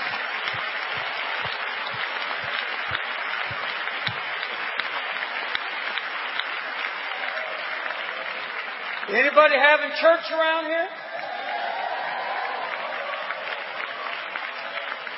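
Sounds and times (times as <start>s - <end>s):
audience hand clapping in praise: 0.0s - 15.1s
speech: 9.1s - 11.0s.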